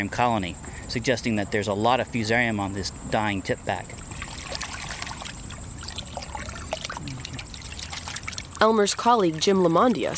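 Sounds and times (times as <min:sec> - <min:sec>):
speech: 0:00.0 - 0:04.0, 0:08.6 - 0:10.1
water sloshing as muck is rinsed off marsh grass roots in a metal pail: 0:03.8 - 0:10.1.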